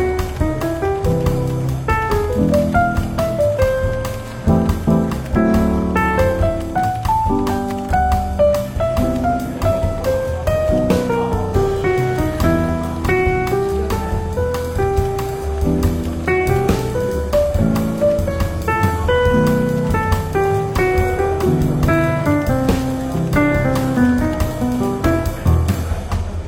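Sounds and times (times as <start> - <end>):
soft relaxed jazz in a bookshop café: 0.0 - 26.4.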